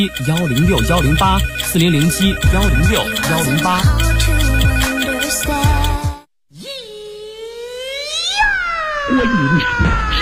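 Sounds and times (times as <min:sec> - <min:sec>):
speech: 0:00.0 - 0:06.1, 0:09.1 - 0:10.2
telephone ringing: 0:00.0 - 0:06.2.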